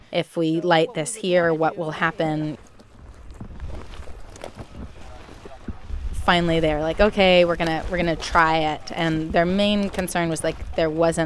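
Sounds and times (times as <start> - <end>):
speech: 0.1 - 2.7, 6.3 - 11.2
gusty wind blowing across a wildfire line buffeting the microphone: 2.4 - 11.2.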